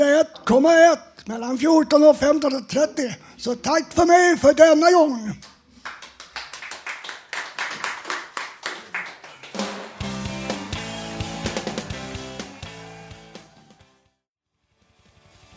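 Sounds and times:
speech: 0:00.2 - 0:05.5
crowd clapping in a steady rhythm: 0:05.4 - 0:11.9
band music: 0:09.6 - 0:13.9.

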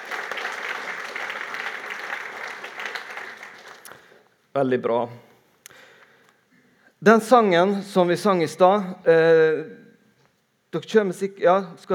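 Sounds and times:
audience applause: 0:00.0 - 0:04.2
speech: 0:04.6 - 0:05.3, 0:07.0 - 0:09.8, 0:10.7 - 0:11.9.

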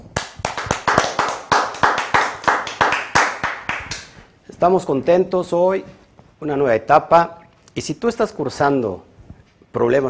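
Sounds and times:
audience applause: 0:00.2 - 0:04.1
speech: 0:04.6 - 0:09.1, 0:09.7 - 0:10.0.

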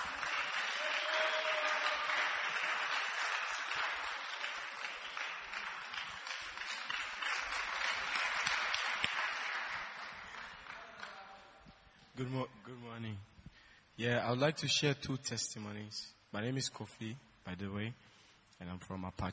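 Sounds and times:
crowd applause: 0:00.0 - 0:11.5
speech: 0:12.2 - 0:13.3, 0:14.0 - 0:19.3.

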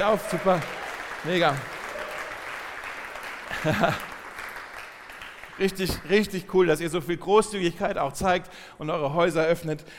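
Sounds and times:
speech: 0:00.0 - 0:01.8, 0:03.6 - 0:04.1, 0:05.6 - 0:09.9
audience clapping: 0:00.0 - 0:06.5
laughter: 0:03.4 - 0:04.2.

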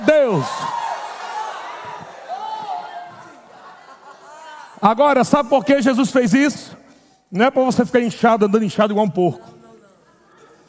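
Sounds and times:
audience shouting for joy: 0:00.0 - 0:04.7
speech: 0:00.4 - 0:00.8, 0:04.8 - 0:09.6
laughter: 0:02.8 - 0:06.0.

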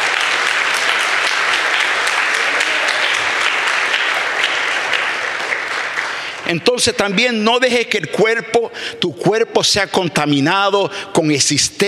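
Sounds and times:
audience applauding loudly: 0:00.0 - 0:07.2
speech: 0:06.5 - 0:11.8.

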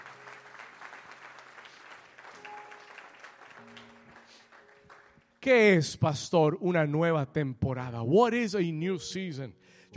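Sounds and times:
audience applause: 0:00.0 - 0:05.2
speech: 0:05.4 - 0:09.9.

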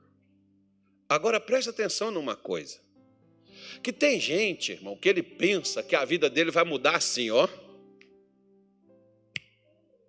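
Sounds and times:
speech: 0:01.1 - 0:02.9, 0:03.7 - 0:07.6
finger snap: 0:09.3 - 0:09.6.

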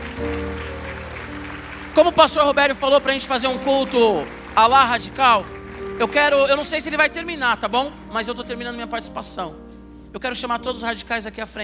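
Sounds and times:
audience applause: 0:00.0 - 0:07.7
speech: 0:02.0 - 0:11.6.

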